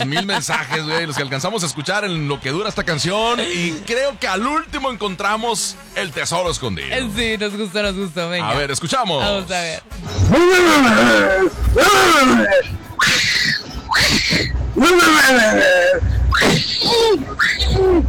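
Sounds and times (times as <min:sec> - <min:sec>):
laughter: 0:00.0 - 0:04.2
speech: 0:00.0 - 0:12.8, 0:14.3 - 0:18.0
puma roaring and screaming: 0:10.2 - 0:18.0.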